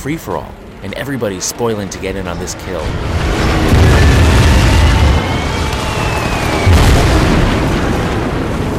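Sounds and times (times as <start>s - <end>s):
speech: 0.0s - 3.6s
bombs exploding on the cruiser Yahagi: 2.9s - 8.7s.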